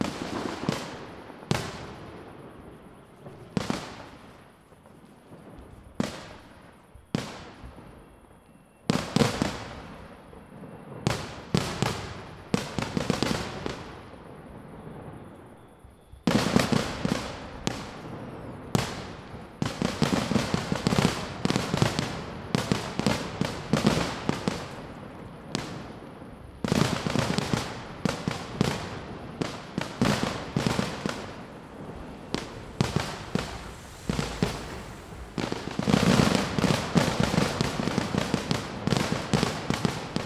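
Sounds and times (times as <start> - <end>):
fireworks: 0.0 - 40.2.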